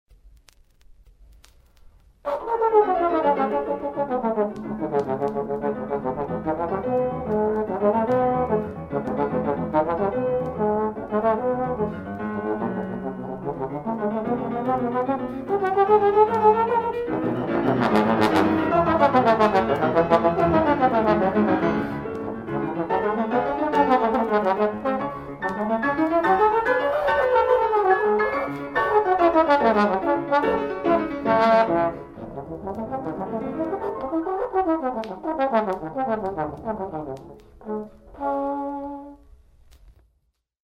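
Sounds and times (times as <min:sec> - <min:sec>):
trombone: 0:02.3 - 0:39.2.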